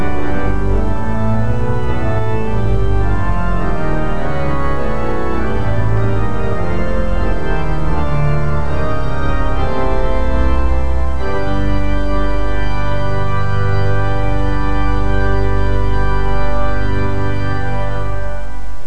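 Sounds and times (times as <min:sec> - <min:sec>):
organs playing a hymn: 0:00.0 - 0:18.8.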